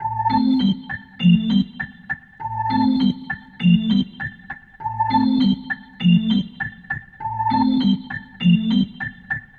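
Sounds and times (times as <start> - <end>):
rotor organ riff: 0.0 - 9.5.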